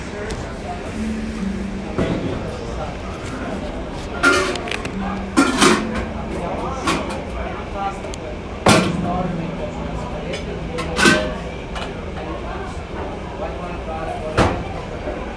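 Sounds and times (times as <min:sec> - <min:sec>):
restaurant ambience: 0:00.0 - 0:15.3.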